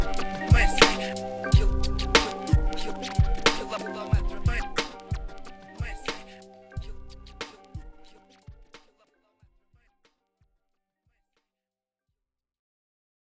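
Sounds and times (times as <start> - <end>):
instrumental music: 0.0 - 8.9.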